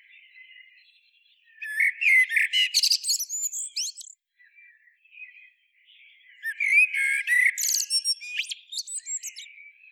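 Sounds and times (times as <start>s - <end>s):
common blackbird Turdus merula uttering rapid chattering high twitters and squeaks: 1.7s - 4.2s, 6.5s - 9.5s.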